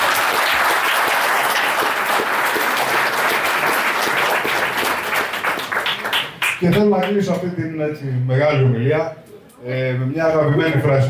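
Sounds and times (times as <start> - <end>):
audience applause: 0.0 - 7.2
speech: 6.6 - 11.0.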